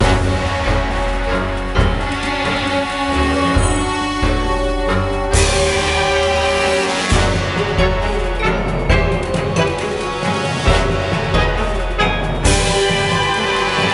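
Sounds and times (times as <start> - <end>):
pirate battle: 0.0 - 13.9.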